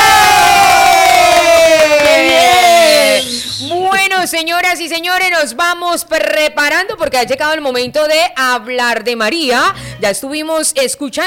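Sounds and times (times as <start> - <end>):
crowd applauding and cheering: 0.0 - 4.0
speech: 4.4 - 11.2.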